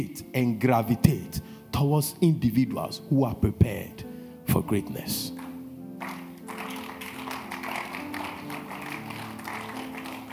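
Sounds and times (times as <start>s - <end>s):
speech: 0.0s - 5.4s
crowd clapping: 5.4s - 10.3s.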